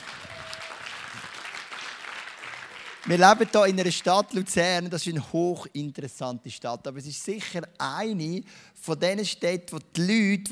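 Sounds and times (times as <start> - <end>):
audience applause: 0.0 - 4.1
speech: 3.0 - 10.5.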